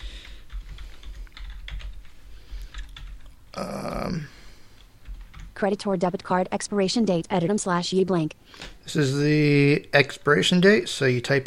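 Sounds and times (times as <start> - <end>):
typing a card number on a computer keyboard: 0.0 - 6.4
speech: 3.6 - 4.3, 5.6 - 11.4.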